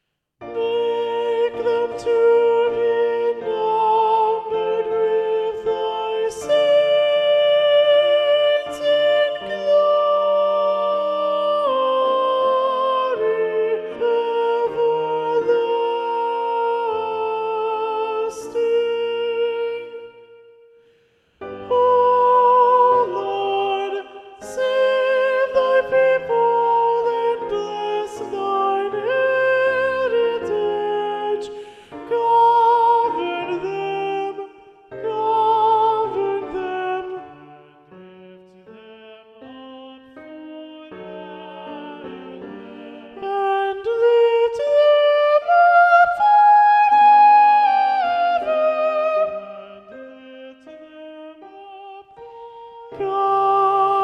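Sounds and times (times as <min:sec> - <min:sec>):
soprano voice singing: 0:00.4 - 0:20.7, 0:21.4 - 0:54.0.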